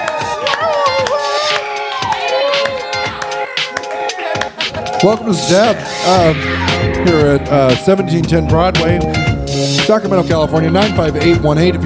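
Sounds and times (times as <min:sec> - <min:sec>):
live studio audience at a comedy show in Sacramento cheering: 0:00.0 - 0:08.2
speech: 0:05.0 - 0:09.3, 0:09.9 - 0:11.8.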